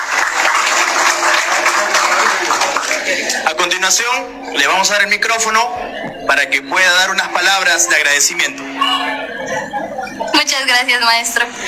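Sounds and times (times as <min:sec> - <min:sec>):
loud audience applause: 0:00.0 - 0:03.6
laughter: 0:00.4 - 0:03.7, 0:07.4 - 0:11.6
speech: 0:03.6 - 0:09.8, 0:10.4 - 0:11.6.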